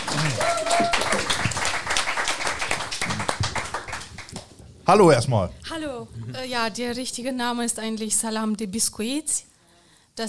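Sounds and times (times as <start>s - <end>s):
audience applause: 0.0s - 4.5s
speech: 4.9s - 9.5s.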